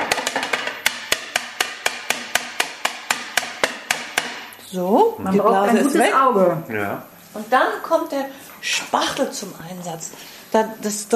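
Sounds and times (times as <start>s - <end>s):
tapping chocolate mould to release air bubble: 0.0s - 4.5s
speech: 4.7s - 11.1s.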